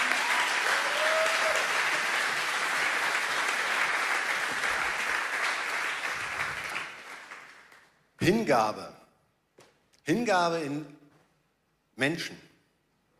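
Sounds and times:
audience applause: 0.0 - 7.9
speech: 8.2 - 9.0, 10.1 - 11.0, 12.0 - 12.5.

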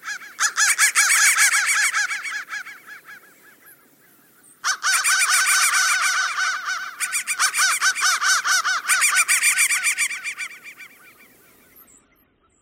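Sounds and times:
crow cawing: 0.0 - 3.8, 4.6 - 11.3.

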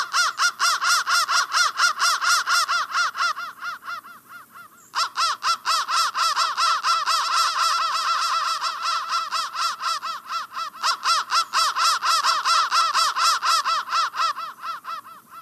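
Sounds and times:
crow caws: 0.0 - 15.4.

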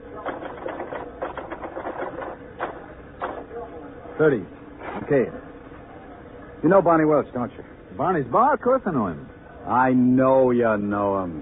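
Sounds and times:
typing: 0.2 - 3.4
speech: 4.2 - 5.4, 6.6 - 11.4.

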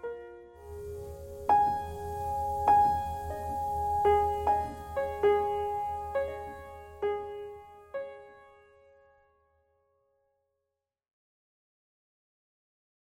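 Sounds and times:
piano noise: 0.0 - 8.8.

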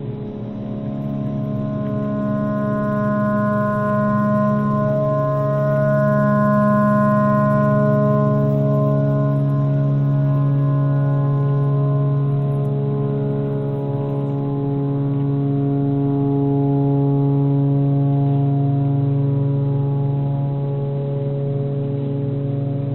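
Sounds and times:
tornado siren: 0.1 - 22.8
clarinet: 0.3 - 12.3.

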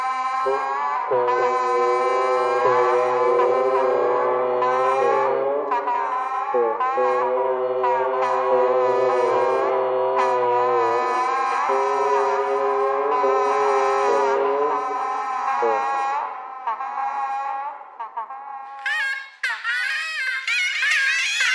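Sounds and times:
bagpipe: 0.0 - 21.5
geese: 0.0 - 21.5
radio: 0.5 - 16.3.

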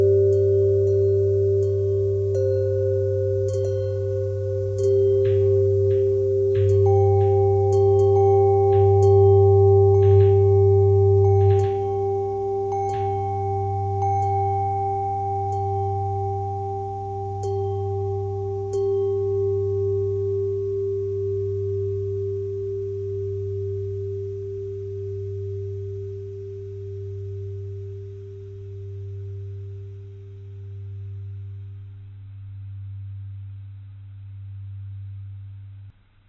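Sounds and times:
bells ringing: 0.0 - 25.6.

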